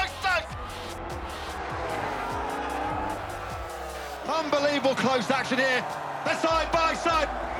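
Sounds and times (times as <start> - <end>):
racing motorcycles roaring past at full throttle: 0.1 - 5.9
speech: 4.8 - 7.5.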